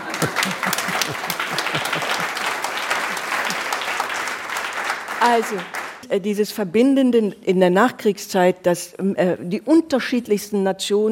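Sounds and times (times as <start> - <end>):
laughter: 0.0 - 4.0
audience applause: 0.0 - 6.0
speech: 5.2 - 11.1.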